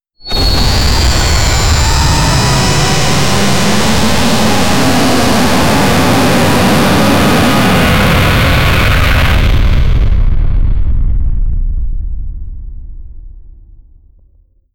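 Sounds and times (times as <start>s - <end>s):
explosive burst: 0.2s - 14.1s.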